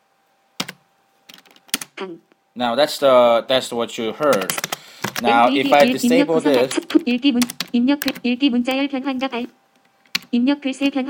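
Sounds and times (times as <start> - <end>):
typing on a computer keyboard: 0.6 - 1.9, 4.3 - 5.3, 6.7 - 8.2, 10.1 - 11.0
speech: 2.0 - 9.6, 10.3 - 11.0.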